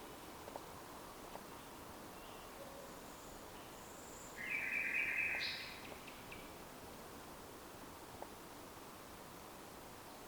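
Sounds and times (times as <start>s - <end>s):
common nightingale singing: 1.5s - 6.5s.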